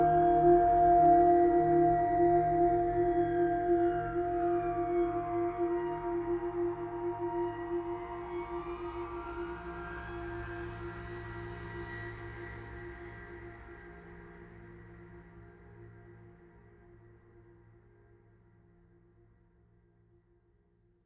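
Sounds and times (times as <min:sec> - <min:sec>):
dome music: 0:00.0 - 0:21.0.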